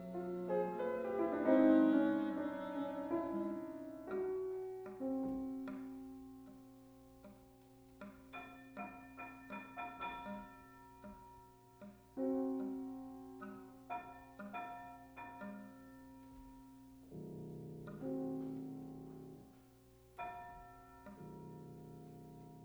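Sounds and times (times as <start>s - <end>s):
clarinet: 0.0s - 5.4s
piano: 0.0s - 22.6s.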